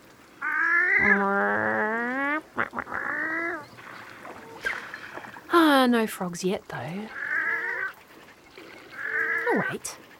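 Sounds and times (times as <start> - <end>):
pair of wood ducks calling on the water: 0.4 - 5.4, 7.1 - 10.0
speech: 5.8 - 7.2, 9.6 - 10.1.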